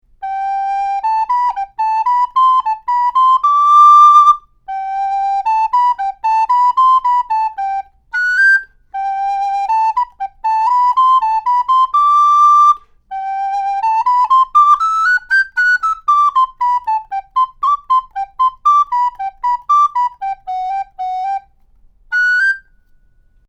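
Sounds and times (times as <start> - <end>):
flute: 0.1 - 23.4.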